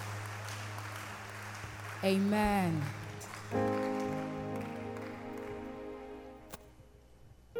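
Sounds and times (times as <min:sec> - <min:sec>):
hand claps: 0:00.0 - 0:05.8
speech: 0:02.0 - 0:04.0.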